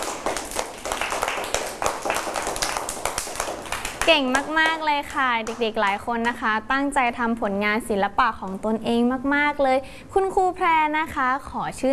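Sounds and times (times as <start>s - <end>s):
group clapping hands: 0.0s - 6.4s
speech: 4.1s - 11.9s.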